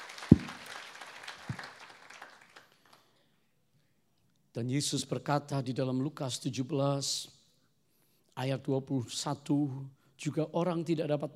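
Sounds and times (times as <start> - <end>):
audience applause: 0.0 - 3.0
heavier low thumps: 0.3 - 0.6
speech: 4.6 - 7.4, 8.4 - 11.3.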